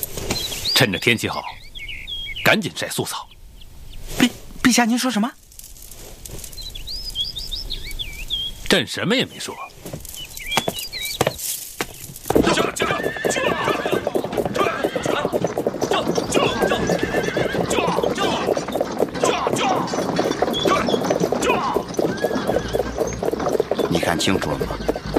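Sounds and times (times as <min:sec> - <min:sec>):
speech: 0:00.8 - 0:01.6, 0:02.4 - 0:03.3, 0:04.1 - 0:05.4, 0:08.7 - 0:10.0, 0:24.2 - 0:24.9
hoofbeats of horses pulling the Grand Empress Dowager's carriage procession: 0:09.7 - 0:25.1
horses neighing: 0:12.2 - 0:25.1.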